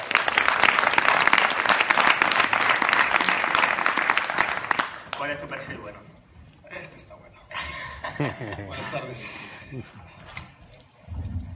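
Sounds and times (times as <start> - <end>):
audience applause: 0.0 - 5.2
speech: 5.3 - 6.2, 8.2 - 10.3
laughter: 7.5 - 10.1.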